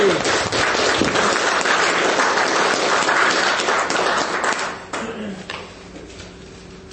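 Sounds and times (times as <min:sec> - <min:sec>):
applause: 0:00.0 - 0:05.2.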